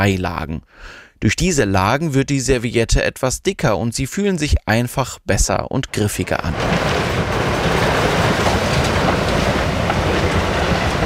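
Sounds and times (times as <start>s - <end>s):
speech: 0.0s - 7.5s
paper factory machines producing paper: 6.5s - 11.0s.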